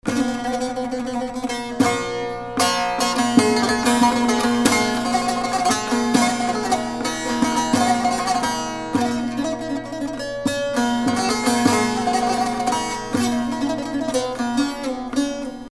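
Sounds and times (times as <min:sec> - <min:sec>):
oriental solo: 0:00.1 - 0:15.3.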